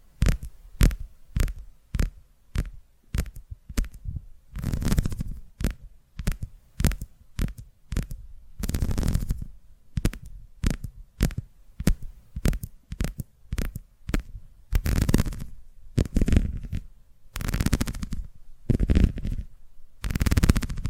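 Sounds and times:
scratchy rustling strokes: 0.0s - 20.8s
rapid tapping on a surface: 0.2s - 4.0s, 4.6s - 20.8s.

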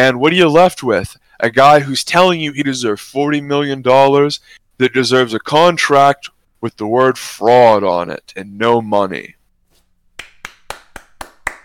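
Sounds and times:
speech: 0.0s - 9.4s
hand clapping: 9.8s - 11.6s.

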